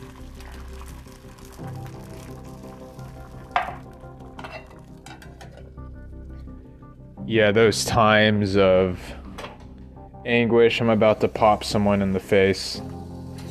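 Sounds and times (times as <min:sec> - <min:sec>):
egg frying in a pan: 0:00.0 - 0:05.5, 0:10.9 - 0:13.4
speech: 0:07.3 - 0:09.2, 0:10.3 - 0:13.0.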